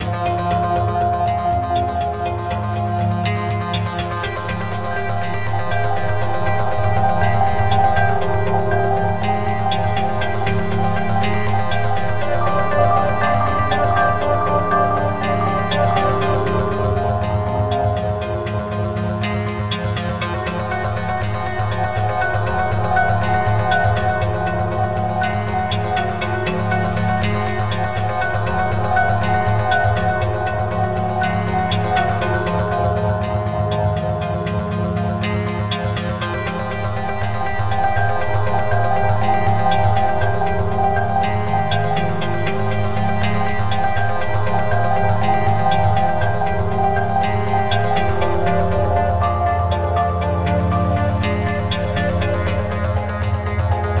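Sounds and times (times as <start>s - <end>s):
cinematic electronic action music: 0.0s - 53.9s.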